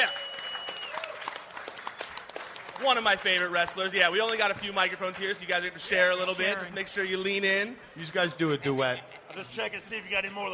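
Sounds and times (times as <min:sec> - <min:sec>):
audience applause: 0:00.0 - 0:04.4
speech: 0:02.8 - 0:10.5.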